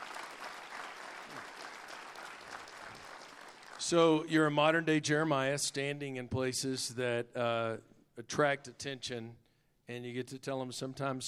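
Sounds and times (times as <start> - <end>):
applause: 0.0 - 4.3
speech: 3.9 - 11.2.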